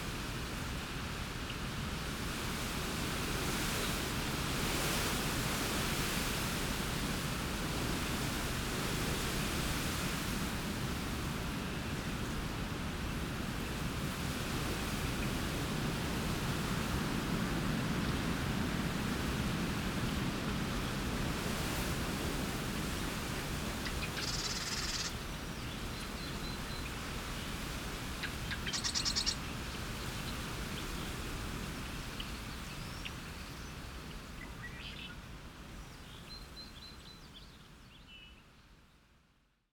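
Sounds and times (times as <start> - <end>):
wind through cattails: 0.0 - 39.6.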